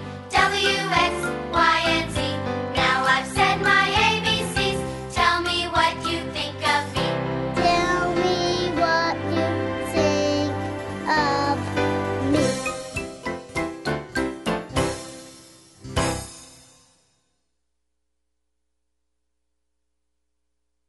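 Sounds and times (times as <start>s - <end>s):
children's learning song: 0.0s - 16.5s.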